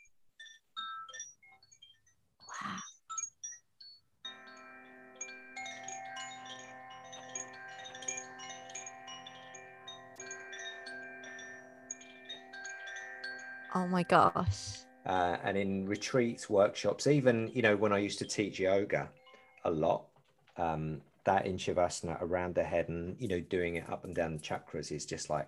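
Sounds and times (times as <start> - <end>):
tuned bamboo-and-steel chimes ringing: 0.0 - 25.4
speech: 13.8 - 25.4.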